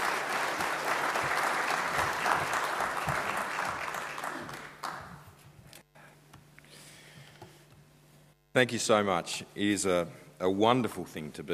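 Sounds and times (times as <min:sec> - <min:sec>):
audience applause welcoming a speaker at a Sunday morning church service: 0:00.0 - 0:05.3
speech: 0:08.6 - 0:11.5.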